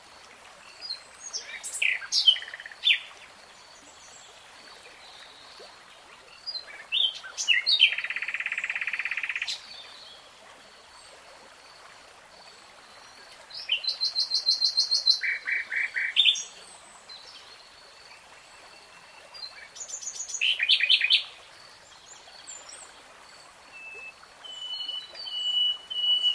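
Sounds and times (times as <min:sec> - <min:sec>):
nightingale song: 0:00.6 - 0:05.6, 0:06.4 - 0:10.2, 0:13.2 - 0:26.3.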